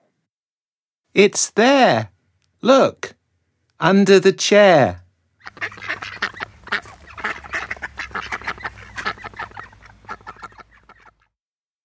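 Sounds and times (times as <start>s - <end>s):
speech: 1.2s - 3.2s, 3.8s - 5.0s
duck quacking: 5.4s - 11.3s.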